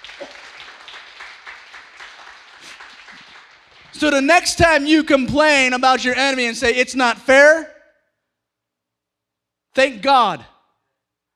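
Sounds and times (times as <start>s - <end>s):
audience clapping: 0.0s - 4.8s
speech: 3.9s - 7.7s, 9.8s - 10.5s.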